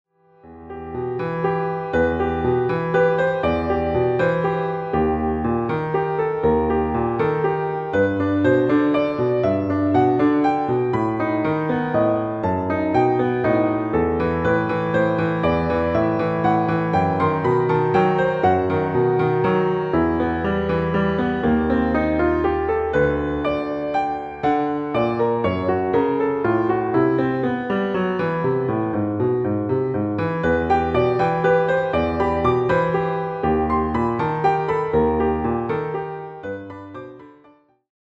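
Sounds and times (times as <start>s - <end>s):
piano suite in E minor: 0.1s - 37.8s.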